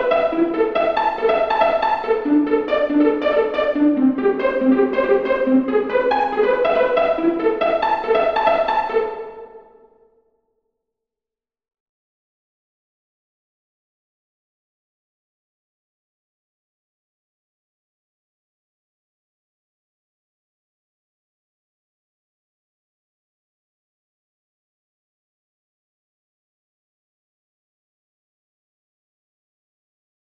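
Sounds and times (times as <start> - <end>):
solo pizzicato strings: 0.0 - 9.9.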